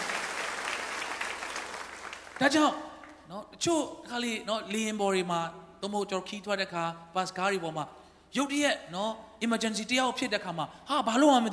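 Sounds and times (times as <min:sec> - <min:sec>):
church congregation clapping hands in praise: 0:00.0 - 0:03.2
speech: 0:02.4 - 0:11.5.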